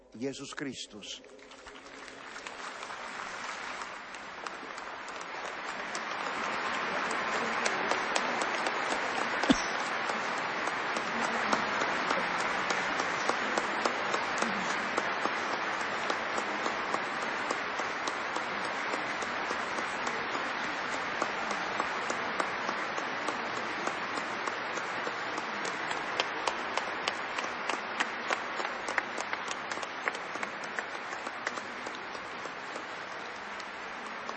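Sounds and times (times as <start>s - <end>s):
speech: 0.2s - 1.6s
crowd clapping: 1.3s - 34.3s.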